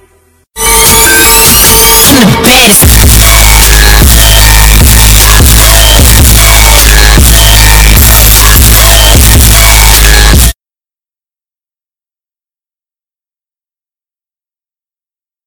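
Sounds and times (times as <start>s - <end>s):
sad funk with heavy bass: 1.3s - 10.5s.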